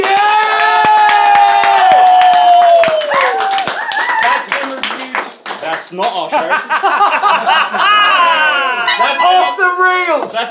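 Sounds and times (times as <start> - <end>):
high-pitched whoops and yells: 0.0 - 4.4
crowd clapping: 0.0 - 6.3, 6.9 - 7.8
speech: 5.9 - 8.0, 9.0 - 10.4
laughter: 6.2 - 9.4.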